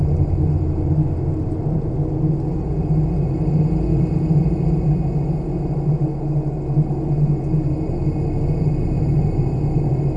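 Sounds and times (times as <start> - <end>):
outdoor cave ambience: 0.0 - 10.1.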